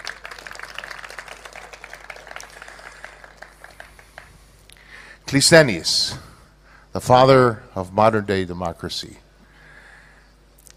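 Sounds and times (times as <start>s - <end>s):
audience applause: 0.0s - 4.5s
speech: 5.3s - 6.3s, 7.0s - 9.2s.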